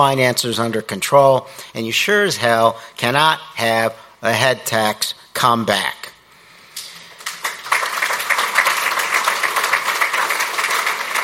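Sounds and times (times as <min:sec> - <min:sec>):
speech: 0:00.0 - 0:06.1
audience applause: 0:07.2 - 0:11.2.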